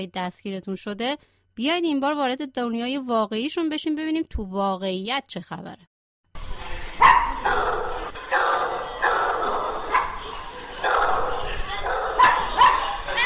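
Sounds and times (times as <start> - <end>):
speech: 0.0 - 5.9
dogs barking at a veterinary clinic: 7.0 - 13.2.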